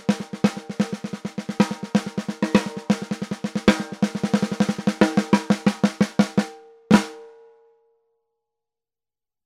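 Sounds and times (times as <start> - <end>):
walnut 14X65 snare drums: 0.0 - 7.4.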